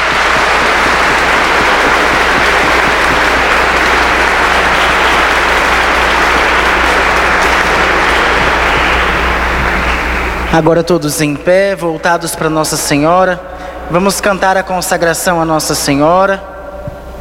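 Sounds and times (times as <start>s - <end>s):
round of applause: 0.0s - 10.7s
speech: 10.5s - 16.5s.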